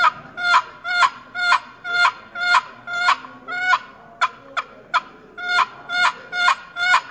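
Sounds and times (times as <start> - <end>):
turkey hen yelp produced on a call: 0.0 - 7.1.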